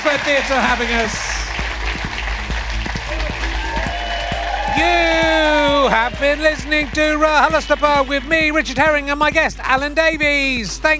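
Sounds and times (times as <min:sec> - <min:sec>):
theatre audience applause: 0:00.0 - 0:08.8
speech: 0:00.2 - 0:01.4, 0:04.8 - 0:10.9.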